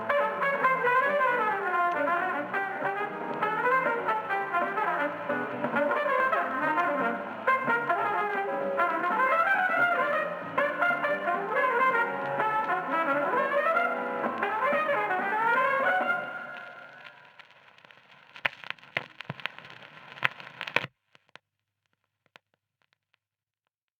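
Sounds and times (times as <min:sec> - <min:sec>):
jazz music: 0:00.0 - 0:17.2.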